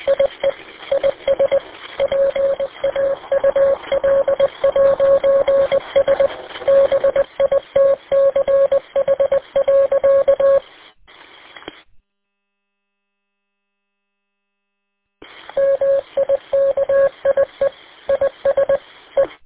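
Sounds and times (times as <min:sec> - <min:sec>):
Morse code tones over radio: 0:00.0 - 0:10.6, 0:15.6 - 0:19.3.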